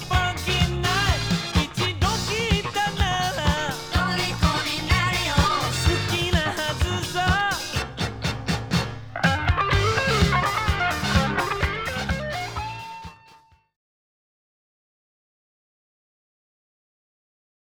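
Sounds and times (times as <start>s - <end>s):
funk music: 0.0s - 13.6s.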